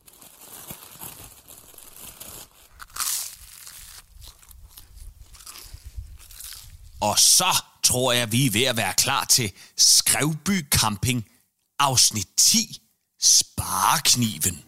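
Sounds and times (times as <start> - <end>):
person eating an open-faced sandwich: 2.6 - 7.0
speech: 7.0 - 14.6.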